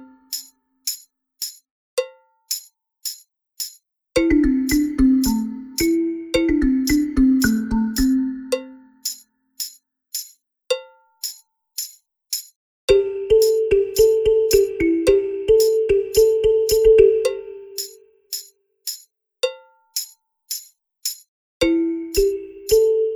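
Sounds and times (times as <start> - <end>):
balafon: 4.2 - 9.0, 12.9 - 18.1, 21.6 - 23.1.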